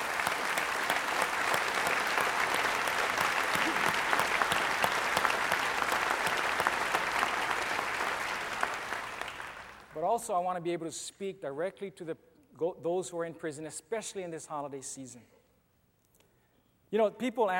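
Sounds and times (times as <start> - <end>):
audience applause: 0.0 - 10.0
speech: 10.2 - 15.4, 16.9 - 17.5.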